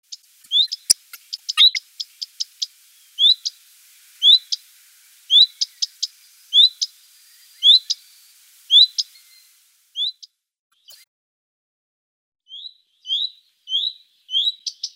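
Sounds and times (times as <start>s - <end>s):
Common Redstart giving rising whistled calls: 0.5s - 3.6s, 4.2s - 4.7s, 5.3s - 11.0s, 12.5s - 14.9s.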